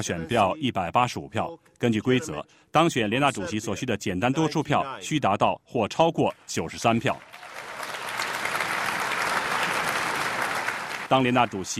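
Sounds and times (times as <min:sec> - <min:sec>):
speech: 0:00.0 - 0:07.5, 0:11.1 - 0:11.7
cheering and applause in assembly hall: 0:07.2 - 0:11.6.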